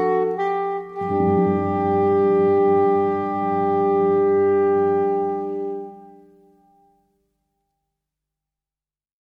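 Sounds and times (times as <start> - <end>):
saxophones: 0.0 - 7.2.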